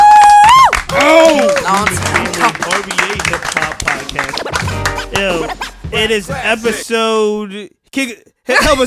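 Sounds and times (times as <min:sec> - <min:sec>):
whooping and shouting voices: 0:00.0 - 0:01.7
loud clapping in studio: 0:00.0 - 0:05.4
speech: 0:06.0 - 0:08.8.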